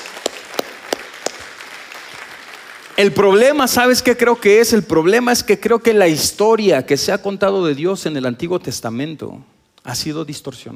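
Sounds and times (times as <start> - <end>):
church congregation clapping in rhythm: 0.0 - 4.8
speech: 3.0 - 10.7.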